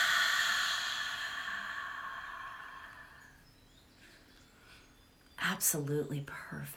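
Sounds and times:
person exhaling a deep breath: 0:00.0 - 0:03.4
speech: 0:05.5 - 0:06.7.

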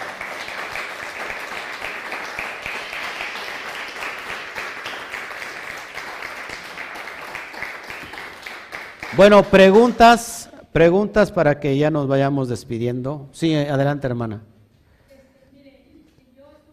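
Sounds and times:
crowd applauding: 0:00.0 - 0:10.2
speech: 0:09.2 - 0:14.5.

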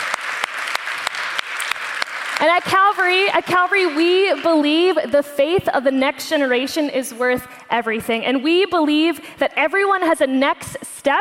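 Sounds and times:
audience applause: 0:00.0 - 0:04.6
speech: 0:02.4 - 0:11.1.

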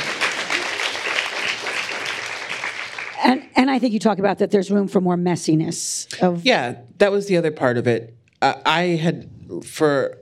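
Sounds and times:
audience applause: 0:00.0 - 0:03.4
speech: 0:03.2 - 0:10.1.

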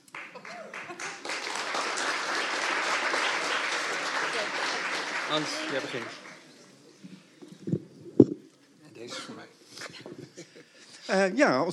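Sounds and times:
audience applause at a public philosophy talk: 0:00.0 - 0:06.6
speech: 0:05.3 - 0:06.2, 0:11.1 - 0:11.7.

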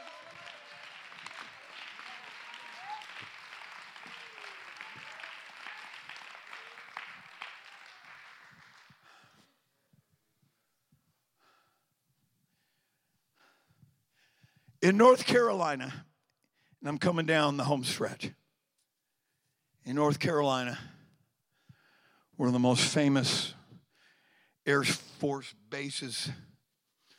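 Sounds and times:
raised voices: 0:00.0 - 0:08.3
audience clapping: 0:00.0 - 0:09.5
speech: 0:14.9 - 0:16.0, 0:16.8 - 0:18.4, 0:19.8 - 0:20.9, 0:22.4 - 0:23.6, 0:24.7 - 0:26.5.

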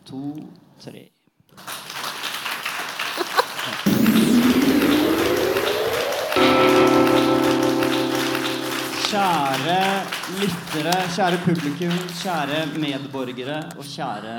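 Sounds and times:
speech: 0:00.1 - 0:01.7, 0:09.1 - 0:14.3
moderate sustained audience applause: 0:01.6 - 0:13.5
rising tone: 0:03.9 - 0:09.8
sustained musical chords: 0:03.9 - 0:10.4.

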